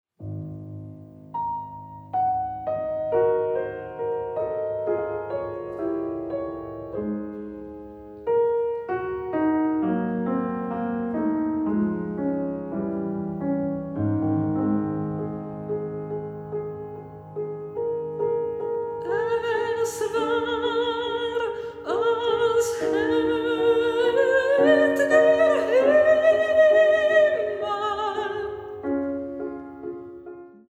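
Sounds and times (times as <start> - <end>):
piano: 0.1 - 30.7
person singing: 19.0 - 28.8.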